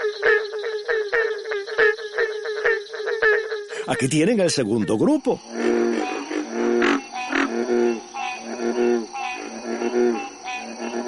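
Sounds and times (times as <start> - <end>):
frogs croaking: 0.0 - 11.0
speech: 3.9 - 5.6.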